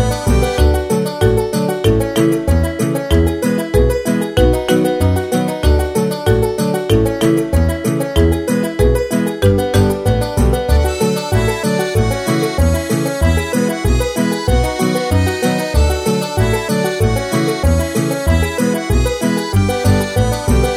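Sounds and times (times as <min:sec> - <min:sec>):
background music for games: 0:00.0 - 0:20.7.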